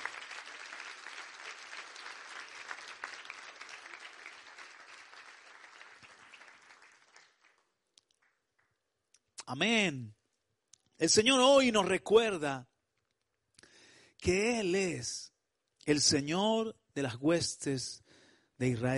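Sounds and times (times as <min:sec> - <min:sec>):
audience applause: 0:00.0 - 0:08.4
speech: 0:09.5 - 0:10.2, 0:11.0 - 0:12.7, 0:14.2 - 0:15.3, 0:15.9 - 0:18.0, 0:18.6 - 0:18.9.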